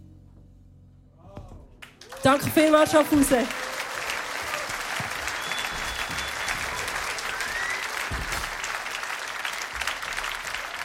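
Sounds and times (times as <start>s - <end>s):
concert audience applause: 1.8s - 10.8s
speech: 2.2s - 3.6s
faint whistles: 5.2s - 8.6s.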